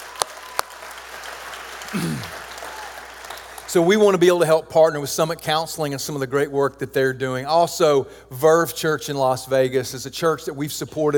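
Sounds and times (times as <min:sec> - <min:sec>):
audience clapping: 0:00.0 - 0:03.9
speech: 0:01.9 - 0:02.4, 0:03.7 - 0:11.1.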